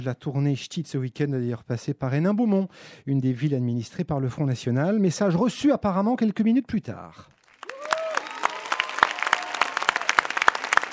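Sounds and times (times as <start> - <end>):
speech: 0.0 - 7.3
audience applause in a cinema screening room welcoming guests: 7.5 - 10.9.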